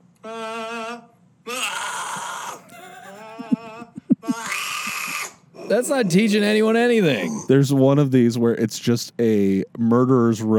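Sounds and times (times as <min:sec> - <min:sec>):
speech: 0:00.2 - 0:00.4, 0:05.7 - 0:10.5
heavy metal scream with changing mouth shape: 0:00.2 - 0:02.6, 0:03.2 - 0:06.2
laughter: 0:02.6 - 0:06.8.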